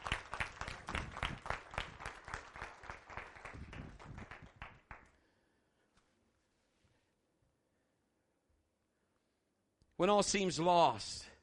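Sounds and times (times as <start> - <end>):
audience hand clapping: 0.0 - 5.2
speech: 10.0 - 11.3.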